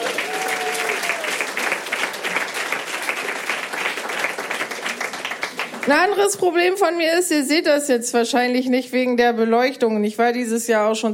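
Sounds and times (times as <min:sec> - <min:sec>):
audience applause: 0:00.0 - 0:06.3
speech: 0:05.8 - 0:11.1.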